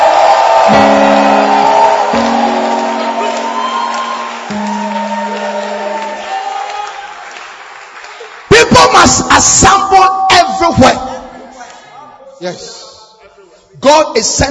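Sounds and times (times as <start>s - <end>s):
audience clapping and shouting: 0.0s - 9.7s
speech: 9.4s - 11.0s, 12.4s - 12.8s, 13.7s - 14.5s.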